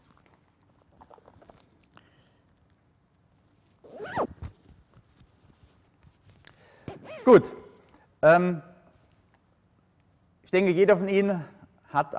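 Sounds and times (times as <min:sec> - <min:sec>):
zipper being pulled up on a pullover: 0:03.8 - 0:04.7, 0:06.9 - 0:07.6
speech: 0:07.2 - 0:07.6, 0:08.2 - 0:08.7, 0:10.5 - 0:12.1.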